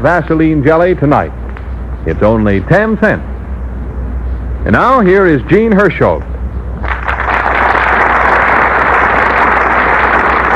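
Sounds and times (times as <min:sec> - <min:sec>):
speech: 0:00.0 - 0:01.4, 0:02.0 - 0:03.3, 0:04.6 - 0:06.3
studio audience applauding: 0:06.8 - 0:10.5.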